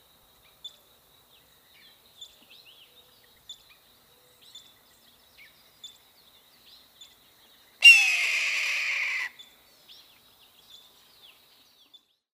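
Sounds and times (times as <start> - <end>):
Red-tailed Hawk Buteo jamaicensis calling: 7.8 - 9.3.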